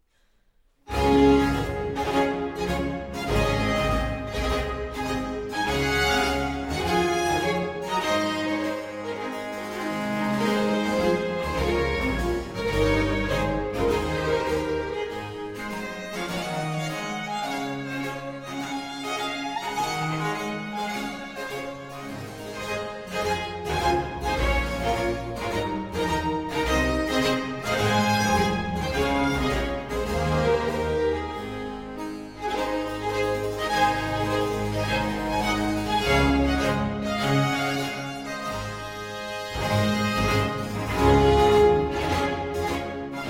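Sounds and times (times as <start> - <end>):
suite in D major for strings and basso continuo overture: 0.8 - 43.2.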